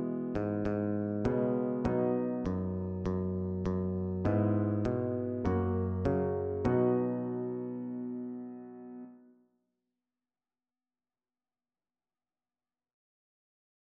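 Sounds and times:
bass guitar: 0:00.0 - 0:08.2.

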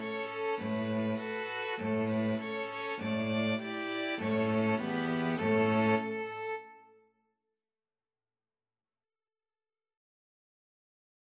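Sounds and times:
string quartet: 0:00.0 - 0:06.9.

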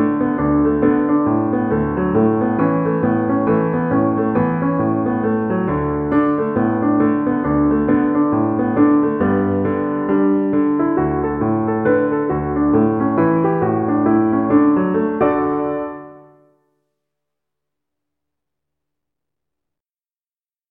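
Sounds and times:
piano rag: 0:00.0 - 0:16.5.

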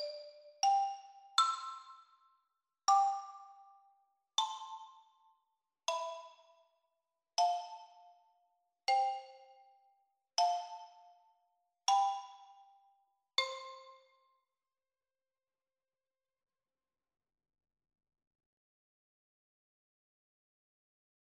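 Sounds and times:
percussion canon: 0:00.0 - 0:14.4.

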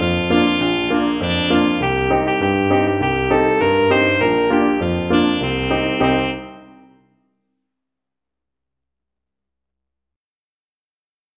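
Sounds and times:
saxophone: 0:00.0 - 0:07.1.

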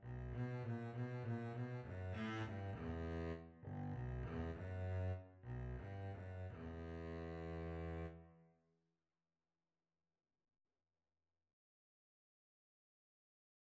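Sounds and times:
double bass duet: 0:00.1 - 0:08.2.

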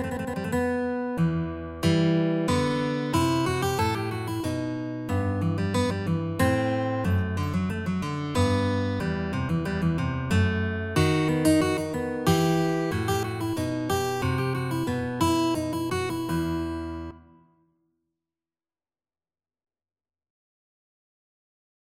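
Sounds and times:
guitar playing a rondeau: 0:00.0 - 0:17.6.

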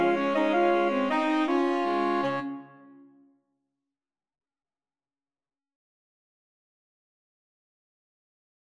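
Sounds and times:
saxophone quartet: 0:00.0 - 0:03.0.

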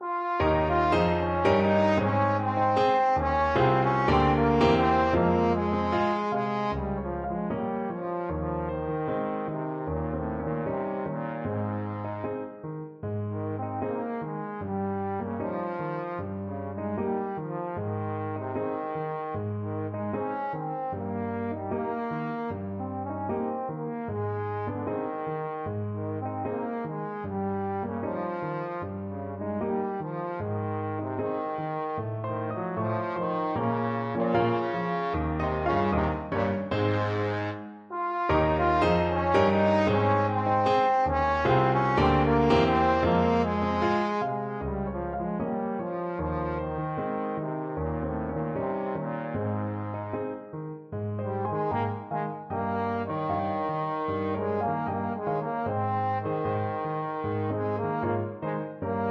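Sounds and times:
trombone: 0:00.0 - 0:12.6, 0:13.3 - 0:50.5, 0:51.2 - 0:59.1.

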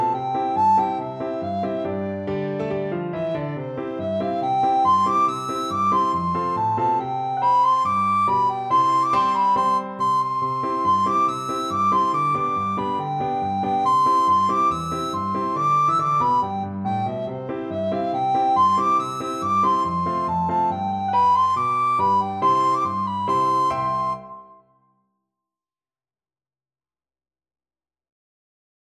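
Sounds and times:
recorder playing a folk tune: 0:00.0 - 0:02.3, 0:03.1 - 0:24.6.

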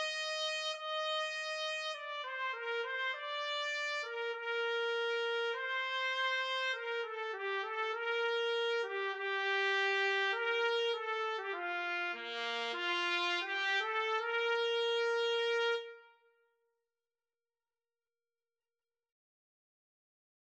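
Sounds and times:
trumpet duet: 0:00.0 - 0:16.3.

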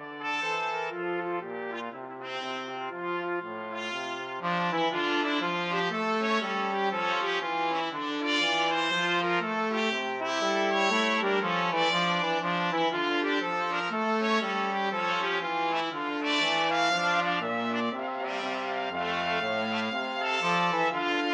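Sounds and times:
trombone playing a bourree: 0:00.0 - 0:21.3
two trumpets playing a bourree: 0:00.0 - 0:21.3.

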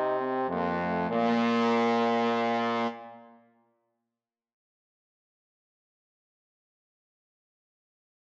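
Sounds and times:
trombone trio playing: 0:00.0 - 0:03.2.

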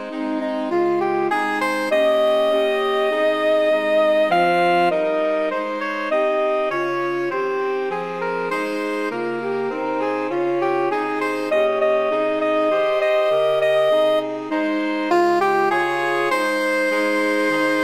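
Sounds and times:
saxophone quartet: 0:00.0 - 0:17.8.

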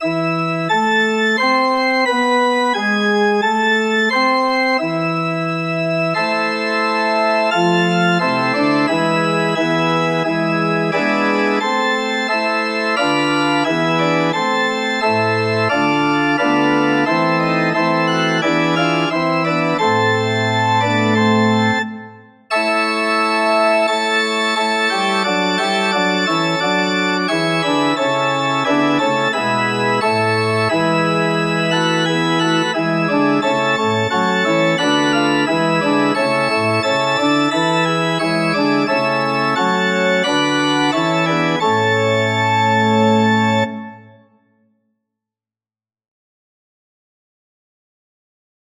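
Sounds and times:
organ: 0:00.0 - 0:44.3.

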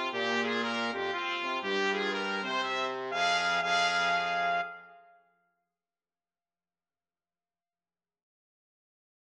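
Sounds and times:
two trumpets: 0:00.0 - 0:05.4
trombone: 0:03.1 - 0:05.0.

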